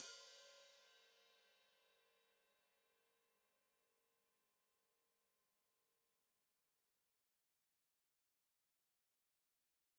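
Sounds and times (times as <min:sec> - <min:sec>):
open hi-hat played with foot: 0:00.0 - 0:00.6.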